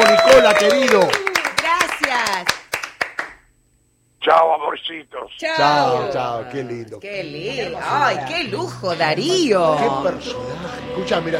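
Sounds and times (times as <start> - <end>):
hands clapping: 0.0 - 3.4
speech: 0.5 - 1.3, 4.3 - 11.3.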